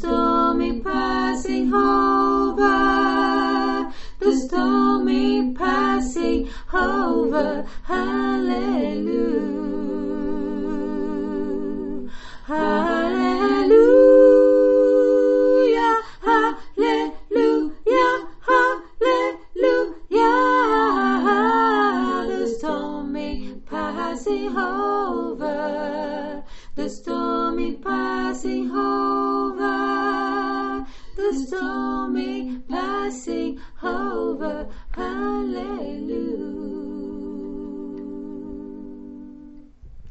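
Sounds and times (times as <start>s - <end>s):
three soprano voices singing: 0.0s - 39.9s.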